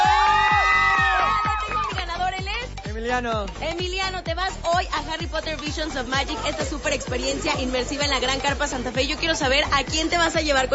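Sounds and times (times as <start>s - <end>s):
children applauding and cheering: 0.0s - 2.2s
speech: 3.1s - 10.7s.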